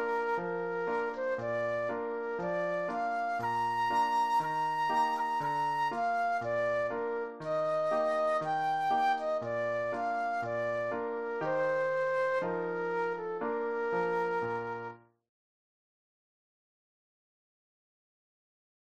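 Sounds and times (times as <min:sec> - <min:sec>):
flute solo: 0:00.0 - 0:15.1.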